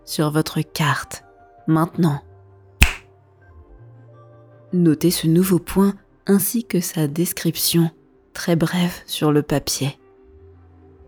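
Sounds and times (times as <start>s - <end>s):
speech: 0.1s - 2.3s, 4.7s - 10.0s
finger snap: 2.8s - 3.0s.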